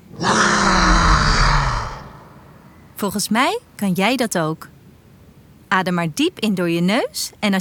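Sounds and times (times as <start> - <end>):
voice imitating a dragon's roar: 0.0 - 2.4
speech: 3.0 - 4.7, 5.7 - 7.6.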